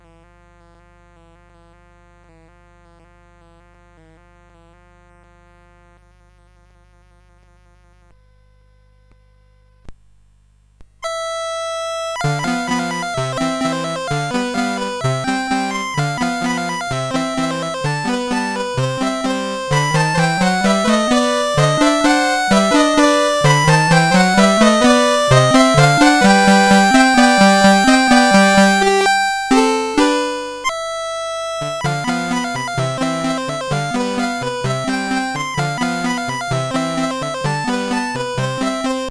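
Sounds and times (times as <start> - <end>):
polka on CSG8580R5 sound chip: 11.1 - 39.0.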